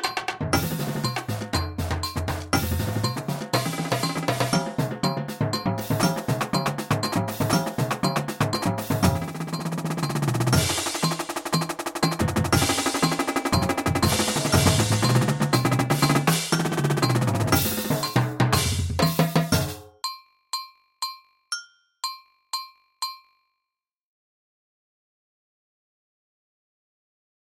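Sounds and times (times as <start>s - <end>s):
drumline playing at 120 bpm: 0.0s - 19.9s.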